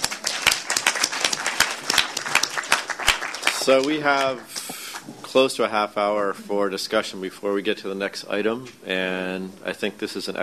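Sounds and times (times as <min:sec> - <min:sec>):
audience applause: 0:00.0 - 0:05.1
speech: 0:03.6 - 0:04.6, 0:05.3 - 0:10.4.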